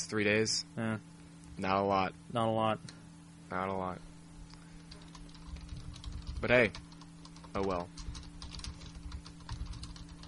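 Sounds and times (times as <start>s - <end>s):
speech: 0.0s - 4.1s, 6.4s - 6.8s, 7.6s - 8.0s
low electrical hum: 0.0s - 10.2s
typing on a computer keyboard: 4.9s - 10.2s.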